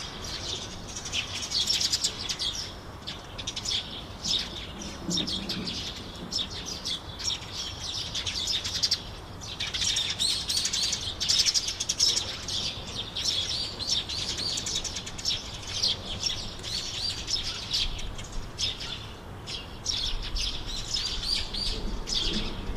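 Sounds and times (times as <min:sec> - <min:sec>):
birds in Takamatsu: 0:00.0 - 0:22.7.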